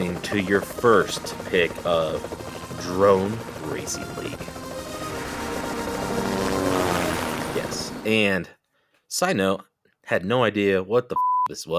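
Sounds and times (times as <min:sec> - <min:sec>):
helicopter: 0:00.0 - 0:08.3
speech: 0:00.3 - 0:04.6, 0:07.6 - 0:11.7.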